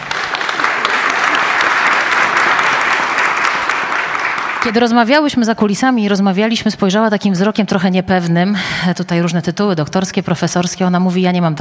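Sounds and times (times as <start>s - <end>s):
audience applause: 0.0s - 5.0s
speech: 4.6s - 11.5s.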